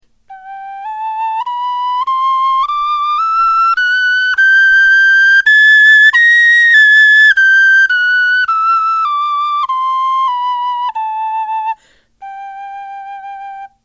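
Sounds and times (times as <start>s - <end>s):
musical scale: 0.3s - 13.7s.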